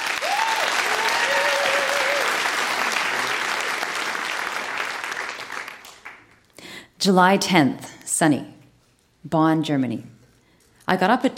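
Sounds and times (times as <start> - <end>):
audience members whooping: 0.0 - 3.7
audience applause at a live reading event: 0.0 - 6.4
speech: 7.0 - 8.6, 9.2 - 10.2, 10.9 - 11.3.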